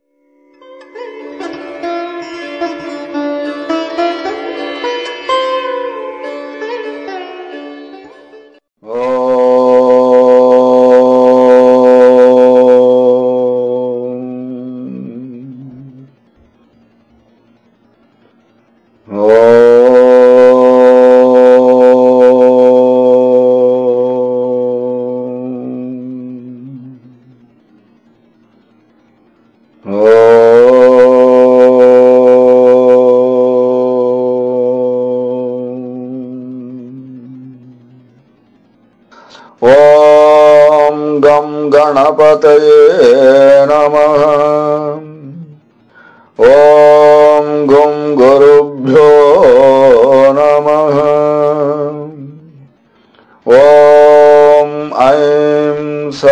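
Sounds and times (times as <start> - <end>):
mantra chanting: 8.8 - 16.3, 19.0 - 27.6, 29.8 - 38.5, 39.1 - 56.3.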